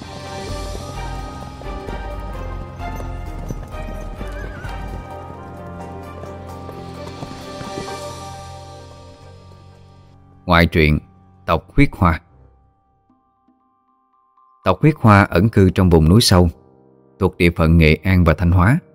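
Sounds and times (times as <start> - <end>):
troop of soldiers' horses galloping hooves: 0.0 - 10.1
horses neighing with loud high whinnies: 1.0 - 8.7
speech: 10.5 - 12.2, 14.6 - 16.6, 17.2 - 18.8.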